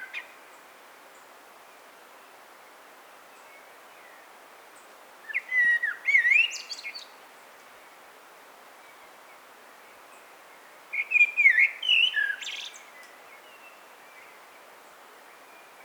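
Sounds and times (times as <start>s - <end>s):
common blackbird singing: 5.3s - 7.1s, 11.0s - 14.3s.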